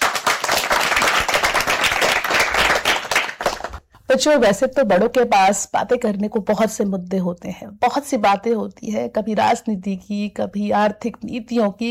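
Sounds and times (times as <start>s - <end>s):
applause: 0.0s - 3.8s
speech: 4.1s - 11.8s.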